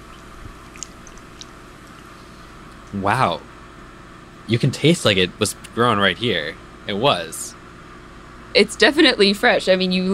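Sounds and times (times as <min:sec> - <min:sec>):
chewing fresh-picked green lettuce: 0:00.0 - 0:02.2
speech: 0:02.9 - 0:03.5, 0:04.5 - 0:07.6, 0:08.5 - 0:10.1.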